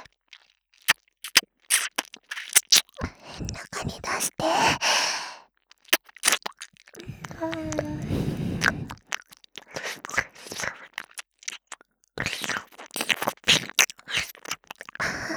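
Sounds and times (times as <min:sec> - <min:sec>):
ear licking: 0:00.3 - 0:04.9, 0:05.7 - 0:15.2
person moaning: 0:07.1 - 0:08.1.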